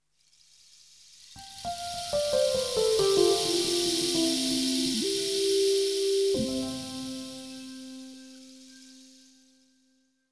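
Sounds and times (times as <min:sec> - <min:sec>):
savanna jingle: 0:01.6 - 0:09.4.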